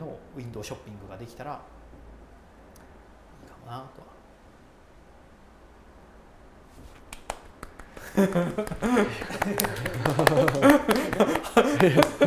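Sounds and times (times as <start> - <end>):
speech: 0.4 - 1.8, 3.7 - 4.2, 8.1 - 12.2
hand clapping: 6.9 - 12.2
people chuckling: 7.3 - 12.2.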